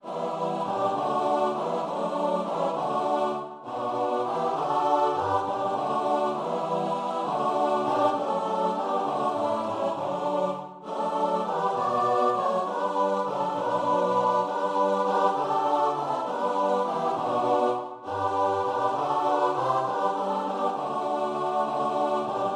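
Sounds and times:
choir singing: 0.0 - 22.5.

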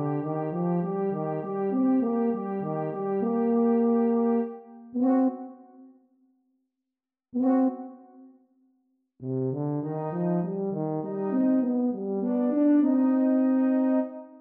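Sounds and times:
two euphoniums and tuba playing: 0.0 - 5.3, 9.6 - 14.0.

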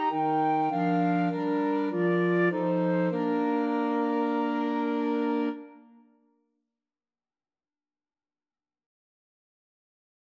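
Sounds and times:
flexible mixed ensemble of 4 players: 0.1 - 5.7.

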